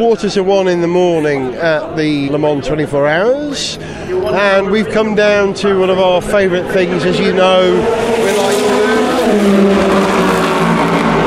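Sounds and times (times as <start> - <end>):
speech: 0.0 - 10.3
race cars roaring past on the start-finish straight at Le Mans 24 Hours: 0.8 - 11.2.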